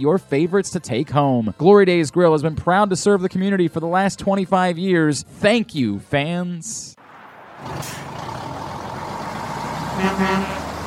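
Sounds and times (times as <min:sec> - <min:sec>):
speech: 0:00.0 - 0:07.0, 0:07.6 - 0:08.2, 0:10.0 - 0:10.6
tractor trailer truck engine rumbling: 0:07.0 - 0:10.8
tractor trailer air brakes hissing: 0:07.8 - 0:08.2
tractor trailer truck horn honking: 0:09.8 - 0:10.8.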